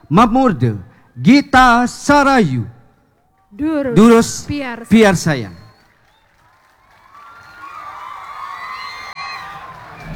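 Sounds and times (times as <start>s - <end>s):
speech: 0.1s - 2.8s, 3.5s - 5.6s
audience cheering before a performance: 4.0s - 10.1s.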